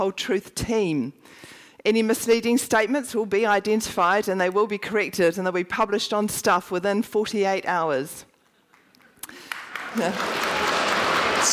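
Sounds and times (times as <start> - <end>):
speech: 0.0 - 8.3, 10.0 - 10.6
audience applause: 8.7 - 11.5.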